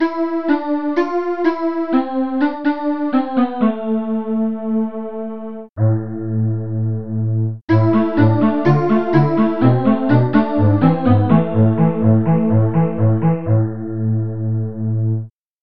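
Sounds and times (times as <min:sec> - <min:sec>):
calliope lead melody: 0:00.0 - 0:06.6, 0:07.7 - 0:15.2.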